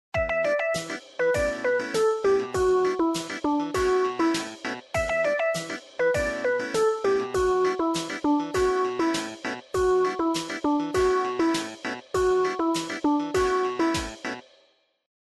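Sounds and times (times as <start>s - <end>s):
ringtone melody: 0.2s - 14.4s.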